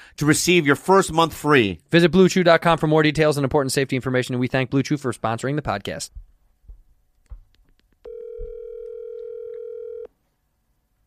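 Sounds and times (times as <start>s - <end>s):
speech: 0.1s - 6.3s
soft thumps and clicks: 6.2s - 8.6s
phone ringback tone: 8.1s - 10.1s.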